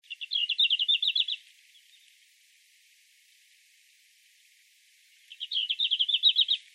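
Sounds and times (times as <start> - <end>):
Red-flanked bluetail song of rapid high even notes: 0.0 - 2.1, 5.3 - 6.7.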